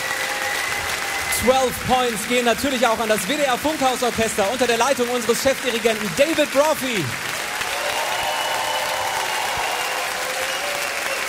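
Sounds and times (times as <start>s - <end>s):
applause: 0.0s - 11.2s
speech: 1.4s - 7.2s.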